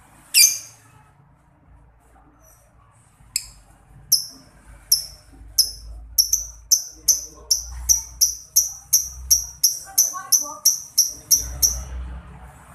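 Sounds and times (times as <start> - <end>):
lovebird chirps: 0.3 - 0.8, 3.4 - 11.9.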